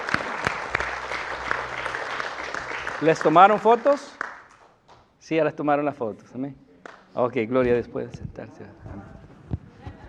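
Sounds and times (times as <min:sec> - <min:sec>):
audience applause: 0:00.0 - 0:04.7
speech: 0:03.0 - 0:04.1, 0:05.3 - 0:06.6, 0:07.2 - 0:09.2.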